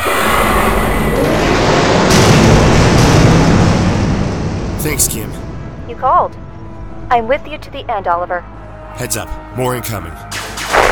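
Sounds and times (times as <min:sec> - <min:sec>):
explosions of fighter craft in an audio-drama battle: 0:00.3 - 0:06.7
speech: 0:05.0 - 0:05.4, 0:06.0 - 0:06.4, 0:07.1 - 0:10.4.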